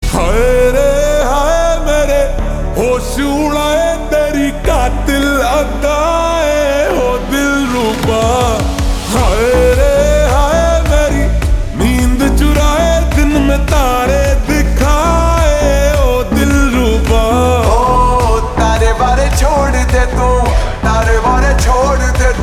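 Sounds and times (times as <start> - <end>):
slowed reverb music: 0.0 - 22.4.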